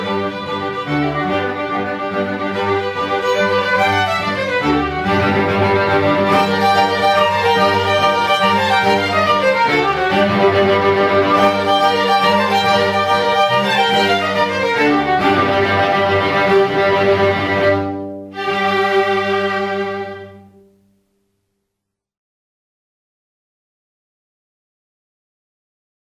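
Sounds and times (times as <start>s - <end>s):
string ensemble playing: 0.0s - 21.0s.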